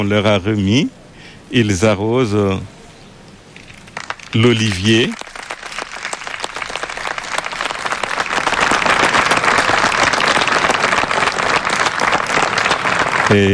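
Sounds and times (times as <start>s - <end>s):
speech: 0.0s - 2.7s, 4.3s - 5.2s, 13.3s - 13.5s
staff applauding: 3.9s - 13.5s.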